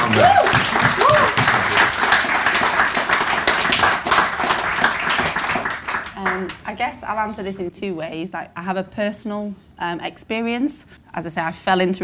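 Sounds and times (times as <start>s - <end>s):
people whooping: 0.0s - 1.9s
round of applause: 0.0s - 6.6s
speech: 0.1s - 0.5s, 6.4s - 12.0s.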